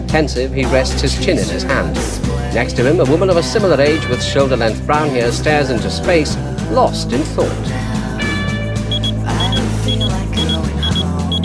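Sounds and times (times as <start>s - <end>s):
speech: 0.1s - 7.8s
digital alarm clock beeping in quick high-pitched pairs: 8.9s - 11.4s.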